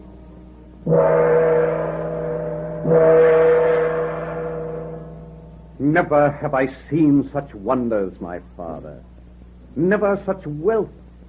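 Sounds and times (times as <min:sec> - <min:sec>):
large gong struck with a sword: 0:00.8 - 0:06.2
speech: 0:05.8 - 0:09.1, 0:09.8 - 0:11.0.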